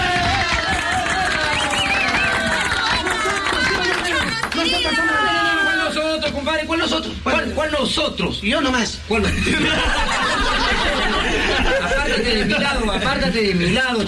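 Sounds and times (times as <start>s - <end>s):
laughter: 0.0s - 4.2s, 9.2s - 13.1s
audience applause: 0.0s - 5.8s
crowd cheering and shouting: 0.0s - 6.1s
speech: 6.9s - 10.2s, 11.3s - 14.0s.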